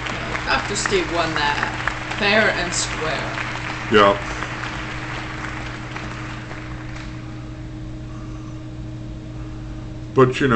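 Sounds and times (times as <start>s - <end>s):
people clapping: 0.0s - 7.5s
speech: 0.7s - 4.4s, 10.2s - 10.5s.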